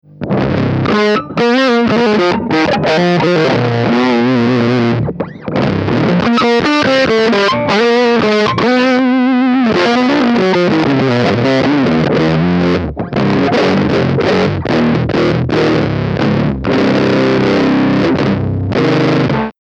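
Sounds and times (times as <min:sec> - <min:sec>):
bass tone: 0:00.0 - 0:19.5.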